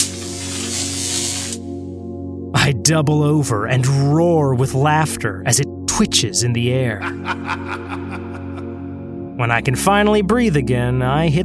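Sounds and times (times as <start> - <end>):
electric fence zapping and sizzling skin: 0.0 - 1.9
speech: 2.6 - 8.3, 9.4 - 11.4
laughter: 7.0 - 8.9.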